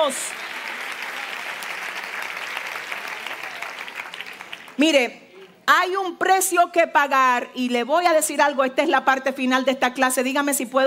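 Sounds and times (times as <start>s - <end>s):
speech: 0.0s - 0.5s, 4.8s - 10.8s
audience applauding: 0.0s - 4.8s.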